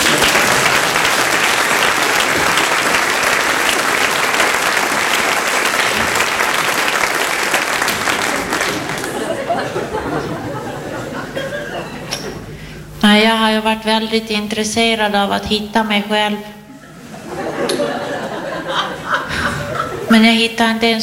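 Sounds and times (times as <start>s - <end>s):
audience applause: 0.0s - 11.7s
laughter: 0.0s - 12.5s, 16.7s - 20.1s
speech: 14.0s - 16.5s, 20.1s - 21.0s.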